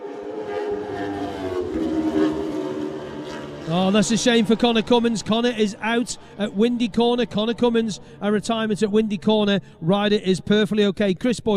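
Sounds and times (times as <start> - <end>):
racing motorcycle engine roaring: 0.0 - 8.8
speech: 3.7 - 11.5.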